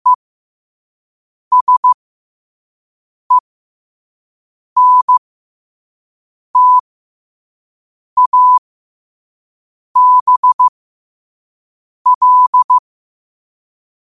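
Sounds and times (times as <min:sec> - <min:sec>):
morse code at 5 wpm: 0:01.5 - 0:02.0, 0:04.8 - 0:05.2, 0:06.6 - 0:06.8, 0:08.2 - 0:08.6, 0:10.0 - 0:10.7, 0:12.1 - 0:12.8.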